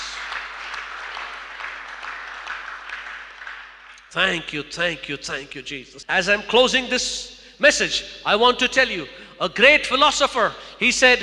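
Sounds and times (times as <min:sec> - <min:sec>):
audience clapping: 0:00.0 - 0:04.6
speech: 0:04.1 - 0:11.2.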